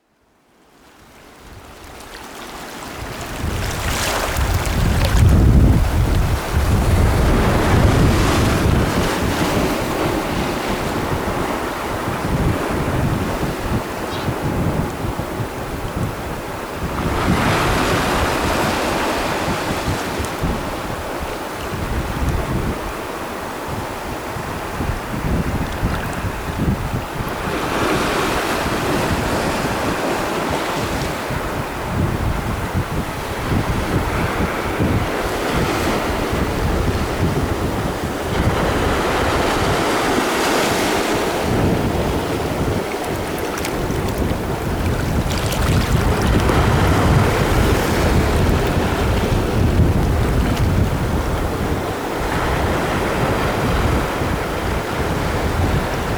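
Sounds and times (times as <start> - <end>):
Caribbean ocean surf: 1.6 - 56.1.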